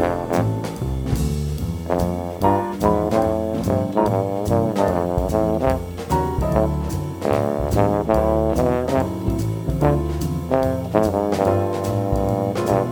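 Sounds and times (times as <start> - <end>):
bass trombone: 0.0 - 12.9.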